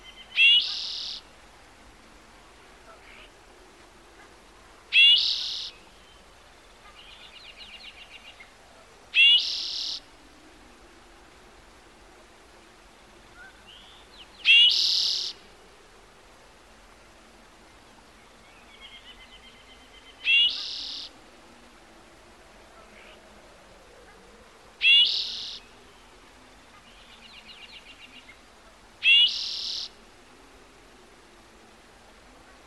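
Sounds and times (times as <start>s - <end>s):
bird song of loud whistled-and-buzzy phrases: 0.0s - 1.3s, 4.9s - 6.2s, 9.2s - 10.1s, 13.4s - 15.4s, 18.4s - 21.1s, 24.8s - 26.1s, 29.0s - 30.0s.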